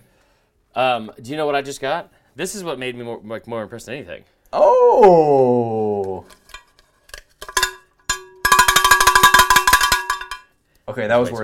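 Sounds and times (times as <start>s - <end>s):
speech: 0.8s - 6.4s, 10.9s - 11.4s
cowbell being rung: 7.5s - 10.5s.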